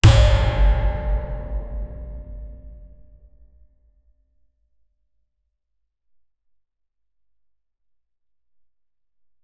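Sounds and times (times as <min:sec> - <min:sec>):
bass-boosted music: 0:00.0 - 0:02.7.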